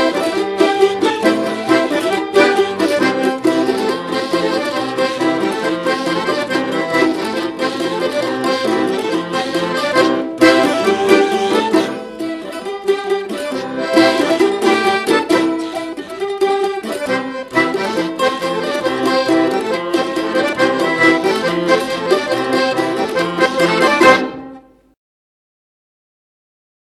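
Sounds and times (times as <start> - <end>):
Bashkir folk tunes: 0.0 - 24.9.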